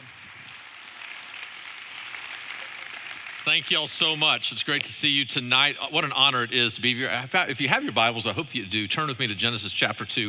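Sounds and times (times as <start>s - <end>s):
faint applause of a church audience at High Desert Church: 0.0s - 4.2s
speech: 3.4s - 10.2s.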